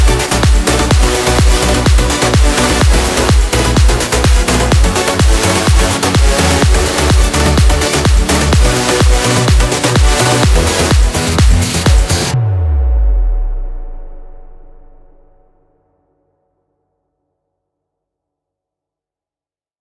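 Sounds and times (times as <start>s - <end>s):
big room dance remix: 0.0s - 15.3s.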